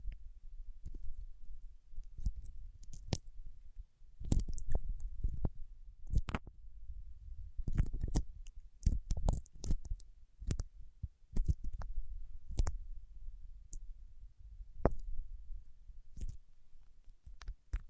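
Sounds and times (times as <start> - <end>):
soft low rumble: 0.0 - 17.8
wax rubbed between fingertips clicking and crackling: 2.1 - 3.4, 4.2 - 6.5, 7.6 - 10.7, 11.3 - 11.9, 12.5 - 12.8, 16.1 - 17.8.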